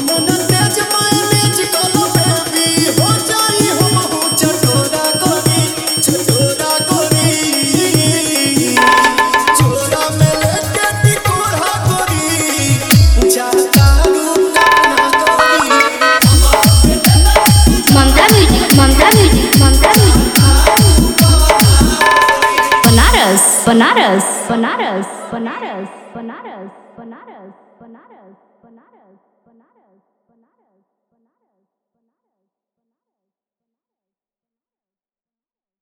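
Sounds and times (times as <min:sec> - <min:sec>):
Bhojpuri DJ remix song: 0:00.0 - 0:24.6.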